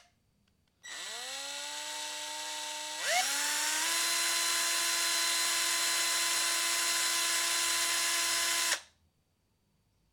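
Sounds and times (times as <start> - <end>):
electric screwdriver: 0.9 - 8.8.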